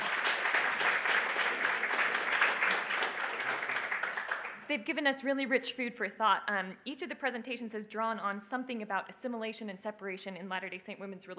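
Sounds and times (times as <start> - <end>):
conference audience applauding presenters: 0.0 - 4.7
speech: 4.7 - 11.3.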